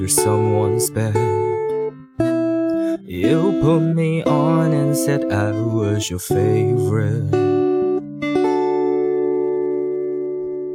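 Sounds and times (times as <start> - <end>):
speech: 0.0 - 1.6, 3.1 - 7.6
guitar being played: 0.0 - 10.7.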